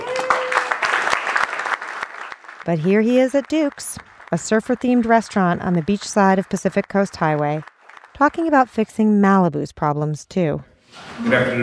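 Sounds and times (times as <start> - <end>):
crowd applause for the sheriff: 0.0 - 9.0
speech: 2.6 - 11.6.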